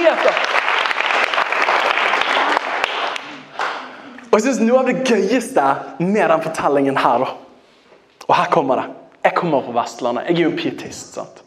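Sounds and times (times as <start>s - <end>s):
audience applause: 0.0s - 4.0s
speech: 4.3s - 7.4s, 8.3s - 11.4s.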